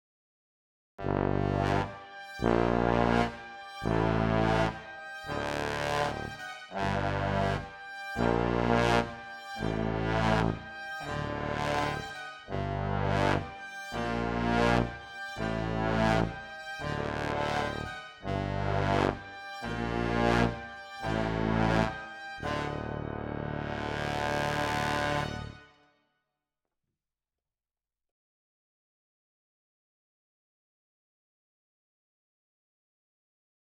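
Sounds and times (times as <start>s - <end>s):
brass instruments: 1.0s - 25.7s.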